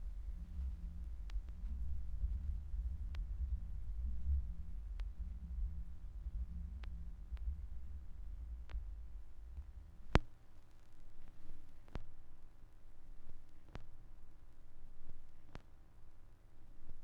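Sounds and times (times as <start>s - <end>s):
vinyl record noise: 0.0s - 12.1s.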